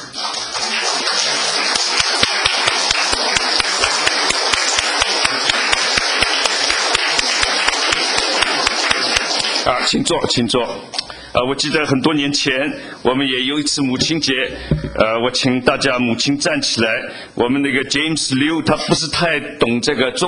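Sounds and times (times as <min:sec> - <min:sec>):
audience applause: 0:00.0 - 0:09.7
speech: 0:09.8 - 0:20.2.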